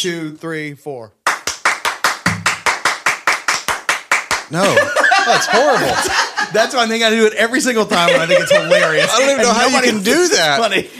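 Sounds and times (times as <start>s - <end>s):
speech: 0.0s - 1.2s, 4.5s - 10.9s
person clapping on the in-between beats: 1.2s - 4.6s
laughter: 4.6s - 7.0s, 7.6s - 10.9s.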